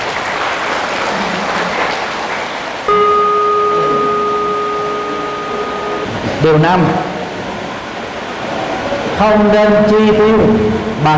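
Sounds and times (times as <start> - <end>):
group of children clapping: 0.0 - 3.1
steady electronic tone: 2.9 - 8.3
speech: 6.4 - 7.1, 9.2 - 11.1.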